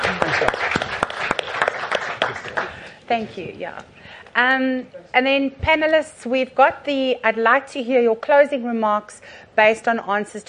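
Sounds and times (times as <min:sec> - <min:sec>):
audience applause: 0:00.0 - 0:02.9
speech: 0:03.1 - 0:10.4.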